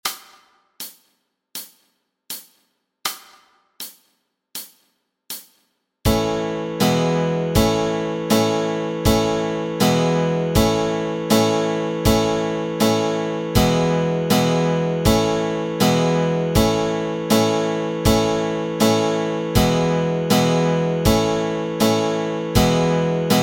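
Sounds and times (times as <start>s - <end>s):
easy guitar chords: 6.1s - 23.4s.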